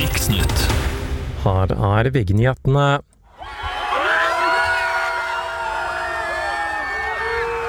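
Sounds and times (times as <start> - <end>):
speech: 0.2 - 0.8, 1.4 - 3.1
crowd cheering and screaming outside a hotel: 3.4 - 7.6.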